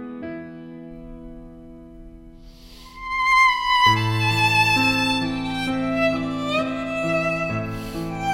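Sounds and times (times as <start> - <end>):
violins: 2.7 - 8.2.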